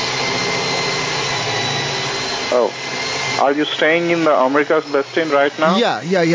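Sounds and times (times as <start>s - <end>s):
power drill boring through a TV: 0.0s - 6.3s
speech: 2.5s - 2.8s, 3.4s - 6.3s.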